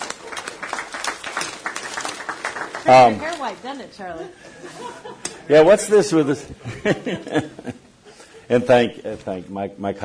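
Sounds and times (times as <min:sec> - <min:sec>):
audience applauding a longtime Foreign Service officer: 0:00.0 - 0:03.4
speech: 0:02.8 - 0:07.8, 0:08.5 - 0:10.0
laughter: 0:04.1 - 0:05.6, 0:06.3 - 0:08.4.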